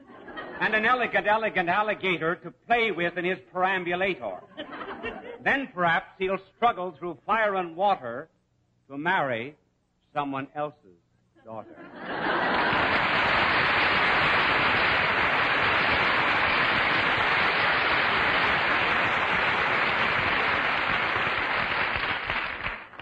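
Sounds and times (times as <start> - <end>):
laughter: 0.0 - 1.6, 4.4 - 5.5, 11.4 - 20.7
speech: 0.6 - 12.8
audience applause: 12.0 - 23.0.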